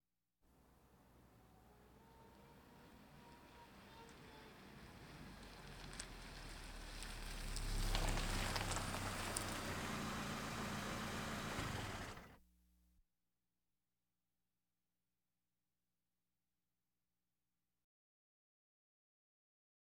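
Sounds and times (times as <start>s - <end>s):
various automobiles: 0.6s - 12.4s.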